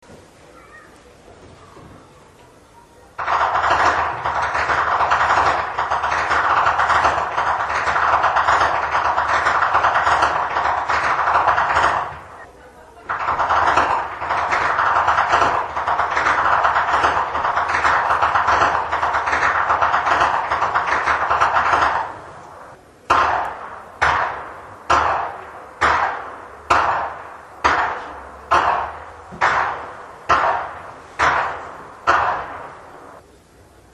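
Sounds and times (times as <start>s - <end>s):
whip cracking in Flachgau: 3.2s - 12.3s, 13.1s - 32.9s.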